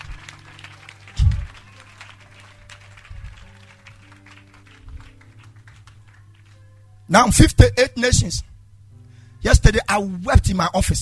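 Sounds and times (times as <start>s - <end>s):
crowd clapping: 0.0s - 6.8s
speech: 7.1s - 8.5s, 9.4s - 11.0s.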